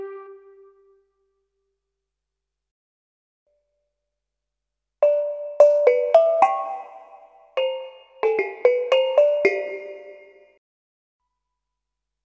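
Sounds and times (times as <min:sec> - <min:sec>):
Roland EA7 ethnic instrument sounds: 0:05.0 - 0:10.6.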